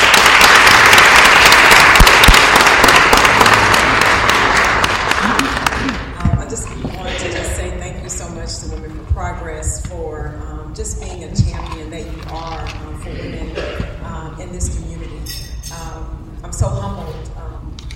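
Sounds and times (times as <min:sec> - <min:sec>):
audience applause: 0:00.0 - 0:06.1
murmuring voices: 0:05.1 - 0:08.7, 0:12.3 - 0:14.8.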